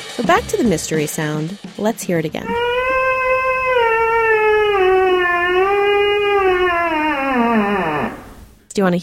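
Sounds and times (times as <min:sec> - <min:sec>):
speech: 0:00.4 - 0:02.7, 0:08.7 - 0:09.0
theremin: 0:02.4 - 0:08.5.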